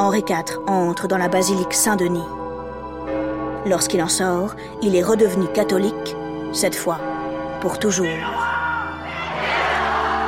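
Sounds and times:
speech: 0.0 - 2.4, 3.6 - 8.5
crowd cheering in acclaim: 8.3 - 10.2.

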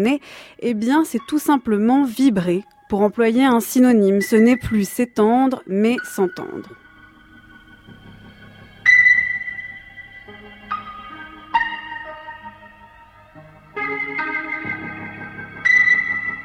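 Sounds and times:
speech: 0.0 - 6.8
slow sustained keyboard chords in a rock recording: 4.2 - 16.4.

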